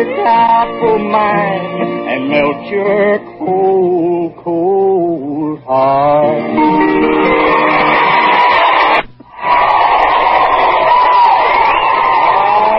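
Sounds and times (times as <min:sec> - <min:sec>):
speech: 0:00.0 - 0:07.7
crowd applause and cheering after a song: 0:07.2 - 0:12.7.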